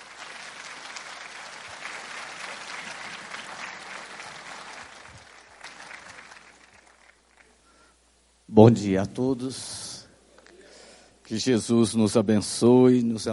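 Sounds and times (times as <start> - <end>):
audience applause for a speaker at a national Spiritist gathering: 0.0 - 7.6
speech: 8.6 - 9.9, 11.3 - 13.3.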